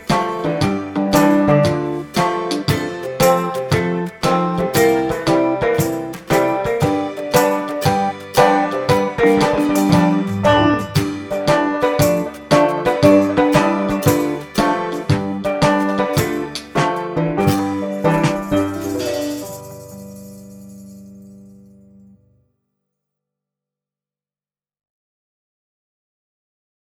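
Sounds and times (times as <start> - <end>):
banjo: 0.0 - 20.6.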